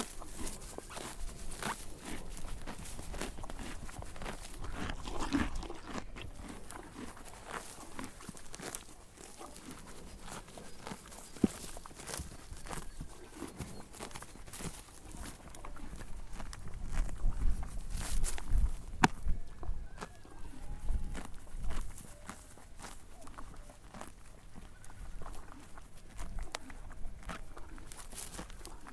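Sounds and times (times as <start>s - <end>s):
horse grazing with crisp tearing and munching: 0.0s - 28.9s.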